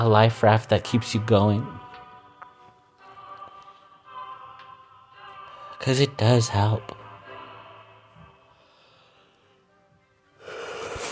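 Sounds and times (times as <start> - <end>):
speech: 0.0 - 1.8, 5.8 - 7.0
person yawning: 10.4 - 11.0.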